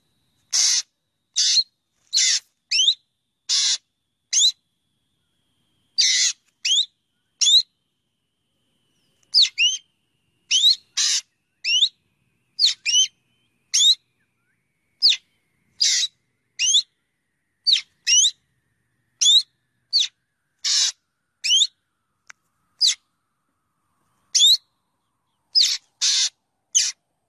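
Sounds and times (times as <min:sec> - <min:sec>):
Cheo Beo birds chirping: 0:00.4 - 0:04.6, 0:05.2 - 0:08.0, 0:08.6 - 0:21.9, 0:22.8 - 0:23.2, 0:24.0 - 0:27.2.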